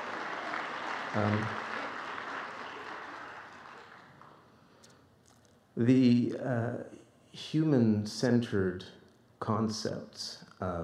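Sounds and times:
audience clapping: 0.0s - 4.5s
speech: 1.1s - 1.7s, 5.8s - 10.8s.

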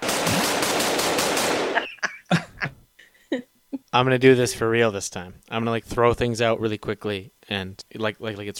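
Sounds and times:
machine gun fire: 0.0s - 2.0s
laughter: 1.7s - 3.4s
speech: 3.3s - 8.5s.

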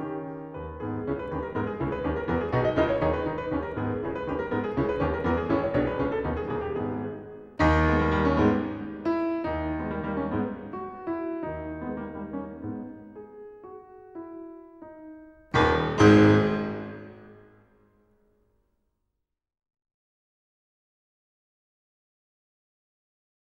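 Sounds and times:
prelude in G sharp minor: 0.0s - 17.5s.

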